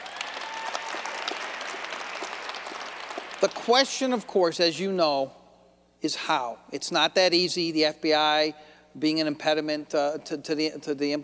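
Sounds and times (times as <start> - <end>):
audience applause: 0.0 - 3.6
speech: 3.4 - 5.4, 6.0 - 11.2.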